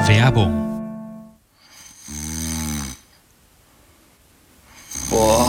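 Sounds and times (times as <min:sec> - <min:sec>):
speech: 0:00.1 - 0:00.7
woman snoring loudly: 0:01.8 - 0:03.0, 0:04.8 - 0:05.4.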